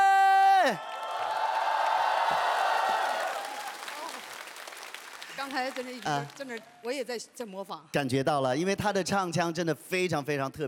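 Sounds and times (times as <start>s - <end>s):
crowd cheering and whooping: 0.0s - 4.4s
speech: 0.6s - 0.9s, 5.5s - 10.6s
crowd applause: 0.6s - 6.8s.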